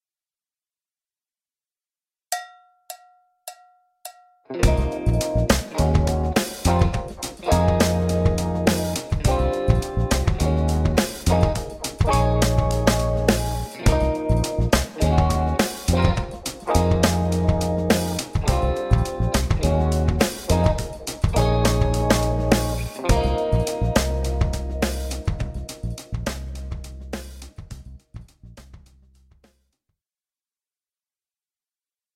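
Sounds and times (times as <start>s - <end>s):
jazz rock music: 4.5s - 27.9s.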